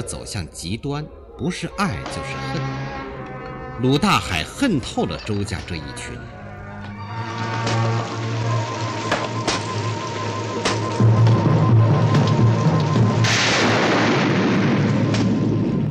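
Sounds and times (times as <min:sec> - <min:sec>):
speech: 0:00.0 - 0:03.0, 0:03.8 - 0:06.4
heavy rain in a thunderstorm: 0:07.0 - 0:15.8
thunder in a rainstorm: 0:07.3 - 0:15.8.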